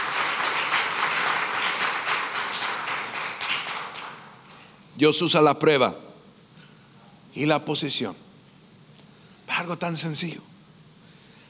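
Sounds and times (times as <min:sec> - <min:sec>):
audience applause: 0:00.0 - 0:04.4
speech: 0:05.0 - 0:06.1, 0:07.4 - 0:08.3, 0:09.6 - 0:10.5.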